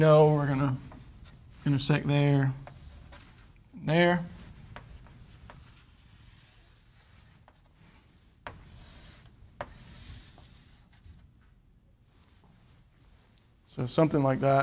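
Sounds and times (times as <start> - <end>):
speech: 0.0 - 0.9, 1.6 - 2.6, 3.8 - 4.3, 13.8 - 14.6
pen strokes of a graph being drawn by hand: 4.4 - 11.1.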